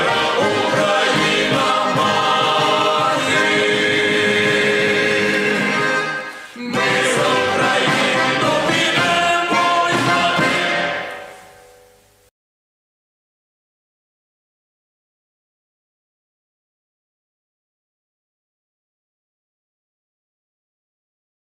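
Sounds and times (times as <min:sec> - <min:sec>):
Ukrainian patriotic song: 0:00.0 - 0:12.2.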